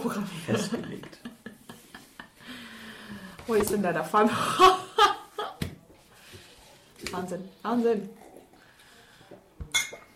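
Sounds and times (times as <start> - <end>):
speech: 0.0 - 1.3, 3.5 - 4.8, 7.2 - 8.2
glasses clinking in a toast: 9.7 - 10.1.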